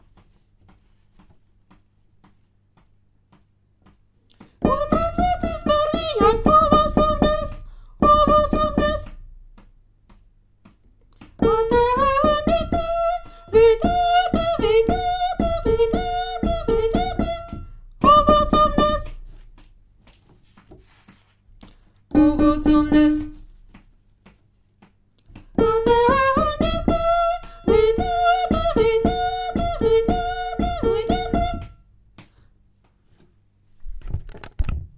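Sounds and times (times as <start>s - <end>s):
soprano singing lamentations: 4.6s - 9.2s, 11.4s - 19.2s, 22.1s - 23.4s, 25.6s - 31.7s.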